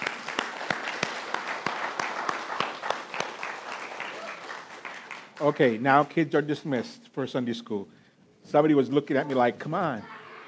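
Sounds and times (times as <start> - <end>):
audience applause: 0.0 - 5.8
speech: 5.4 - 10.2.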